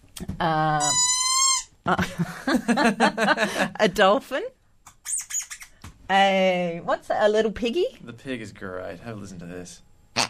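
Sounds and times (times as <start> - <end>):
speech: 0.4 - 1.1, 1.8 - 5.2, 6.1 - 9.9
squeaky plastic hamburger toy squealing: 0.8 - 1.8, 5.0 - 5.7.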